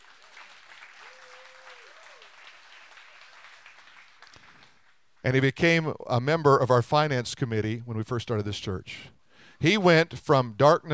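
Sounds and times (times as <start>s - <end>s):
audience applauding: 0.0s - 5.0s
speech: 5.2s - 10.9s.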